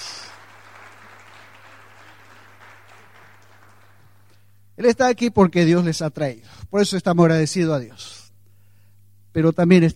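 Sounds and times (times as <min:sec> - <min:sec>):
audience applause: 0:00.0 - 0:04.3
speech: 0:04.8 - 0:08.2, 0:09.3 - 0:09.9.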